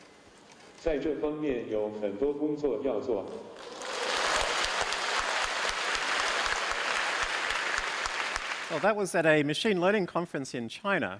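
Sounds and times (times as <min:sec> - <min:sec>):
speech: 0:00.8 - 0:03.6, 0:08.7 - 0:11.1
spontaneous applause at a conference: 0:03.6 - 0:09.1.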